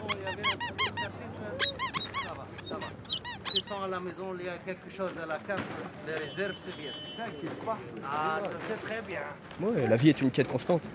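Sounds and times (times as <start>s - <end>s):
rubber dog toy squeaking: 0.0s - 4.0s
speech: 3.8s - 10.9s.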